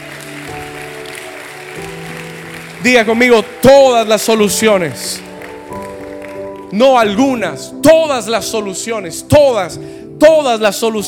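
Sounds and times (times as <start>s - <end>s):
audience applause: 0.0s - 6.8s
speech: 2.8s - 5.3s, 6.7s - 11.0s.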